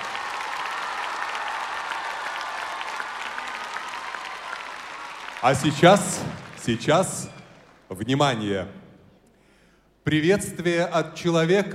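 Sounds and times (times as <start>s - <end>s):
sustained audience applause: 0.0s - 8.0s
speech: 5.4s - 8.8s, 10.1s - 11.7s.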